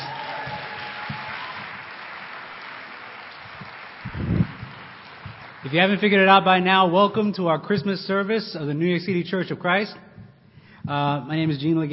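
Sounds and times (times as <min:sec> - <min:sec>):
audience applauding the choir: 0:00.0 - 0:06.5
speech: 0:05.6 - 0:10.0, 0:10.9 - 0:11.9.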